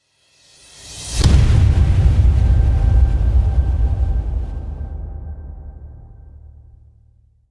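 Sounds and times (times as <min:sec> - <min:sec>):
whoosh: 0:00.4 - 0:06.9
nuclear explosion boom: 0:01.2 - 0:07.0.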